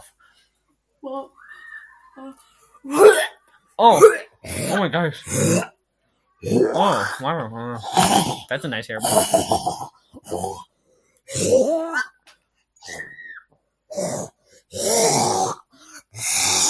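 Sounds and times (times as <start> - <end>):
child vomiting: 2.8 - 5.8, 6.4 - 7.2, 7.8 - 10.7, 11.3 - 12.2, 12.9 - 16.6.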